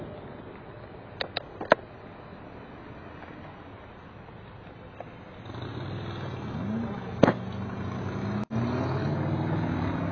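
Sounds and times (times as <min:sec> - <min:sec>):
traffic and road noise on city roads in Portland: 0:00.0 - 0:10.1.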